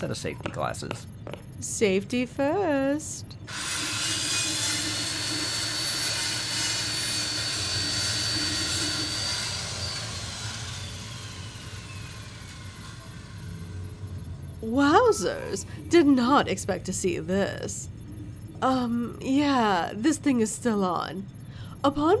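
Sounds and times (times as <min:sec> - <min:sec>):
speech: 0:00.0 - 0:03.8, 0:14.7 - 0:18.0, 0:18.6 - 0:22.1
water-cooled bone saw running: 0:03.5 - 0:14.3.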